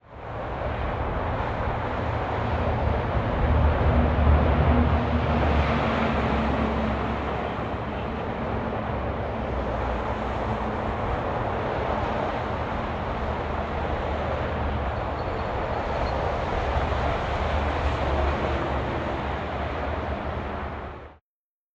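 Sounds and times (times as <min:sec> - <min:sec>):
traffic: 0:00.0 - 0:21.2.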